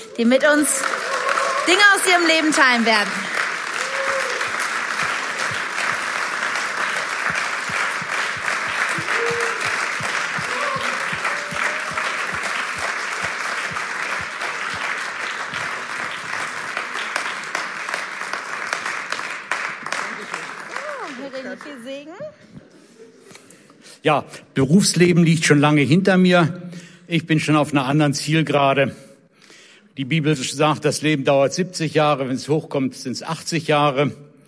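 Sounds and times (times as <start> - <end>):
audience applause: 0.0 - 21.9
speech: 0.2 - 1.0, 1.6 - 3.3, 24.0 - 29.0, 30.0 - 34.3
faint voices and whoops: 0.8 - 2.0, 3.7 - 4.6, 8.9 - 12.4, 20.7 - 21.2.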